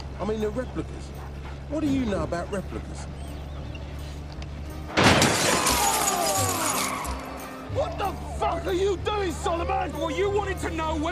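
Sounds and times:
speech: 0:00.2 - 0:03.2, 0:07.7 - 0:11.1
gunshot fired inside a car: 0:05.0 - 0:05.7
crackling shattering debris: 0:05.0 - 0:07.3.

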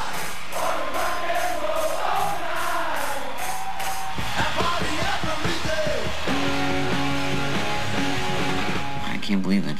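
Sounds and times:
concert crowd cheers spliced from live shows: 0:00.0 - 0:09.0
concert crowd whistles: 0:01.6 - 0:07.4
rock track: 0:03.7 - 0:09.4.

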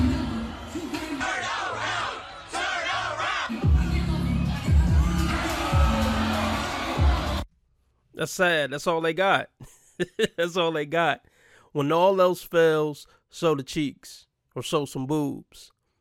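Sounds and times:
crowd cheering: 0:00.0 - 0:07.5
speech: 0:08.2 - 0:15.7.

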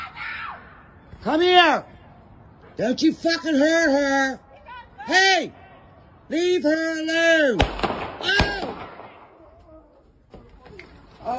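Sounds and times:
people shouting frantically: 0:00.0 - 0:07.6
speech: 0:01.2 - 0:01.9, 0:02.8 - 0:04.4, 0:05.0 - 0:05.6, 0:06.3 - 0:08.5
gunshot fired at a woman during a violent confrontation: 0:07.6 - 0:09.4.

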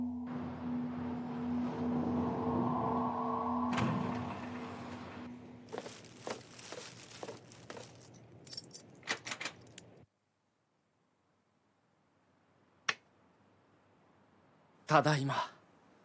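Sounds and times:
low steady humming drone: 0:00.0 - 0:05.7
keys jangling: 0:07.1 - 0:10.0
speech: 0:14.9 - 0:15.6.

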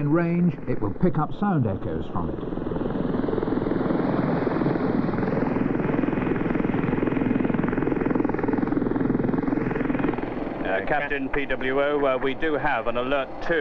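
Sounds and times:
speech: 0:00.0 - 0:02.7, 0:10.9 - 0:13.5
Sea King helicopter hovering: 0:00.0 - 0:13.5.

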